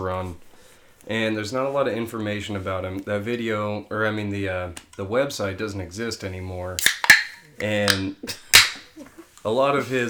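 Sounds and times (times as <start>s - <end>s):
speech: 0.0s - 7.0s, 7.6s - 10.0s
beer can cracking open with fizzing hiss: 6.8s - 8.9s.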